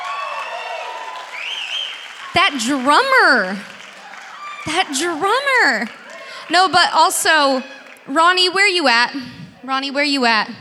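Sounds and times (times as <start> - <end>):
church congregation whooping and cheering: 0.0 - 8.1
church congregation clapping for the band: 0.0 - 8.2
speech: 2.3 - 3.7, 4.6 - 10.5.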